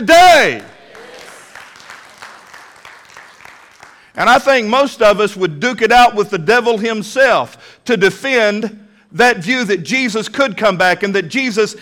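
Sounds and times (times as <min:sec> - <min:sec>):
speech: 0:00.0 - 0:00.7, 0:04.2 - 0:11.8
audience clapping: 0:00.5 - 0:04.2.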